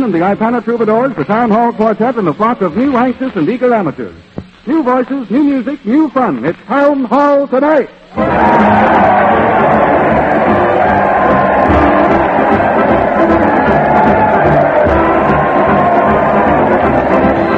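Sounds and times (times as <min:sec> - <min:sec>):
speech: 0:00.0 - 0:09.6
large crowd cheering and shouting in the streets: 0:08.1 - 0:17.5.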